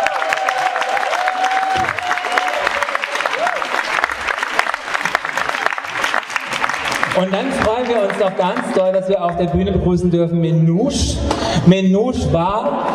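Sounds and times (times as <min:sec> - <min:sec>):
audience applause: 0:00.0 - 0:09.5
speech: 0:07.2 - 0:12.9.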